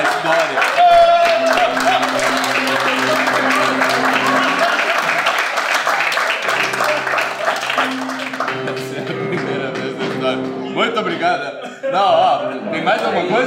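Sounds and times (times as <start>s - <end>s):
sustained crowd applause: 0.0s - 10.6s
laughter: 0.0s - 13.4s.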